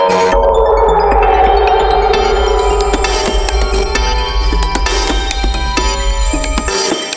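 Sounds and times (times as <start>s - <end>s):
energy shield sound at 132 BPM: 0.1s - 6.8s.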